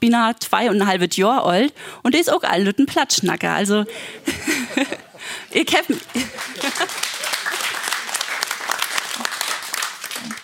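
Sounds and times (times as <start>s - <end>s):
speech: 0.0s - 7.1s
laughter: 3.8s - 9.4s
audience applauding: 5.2s - 10.4s.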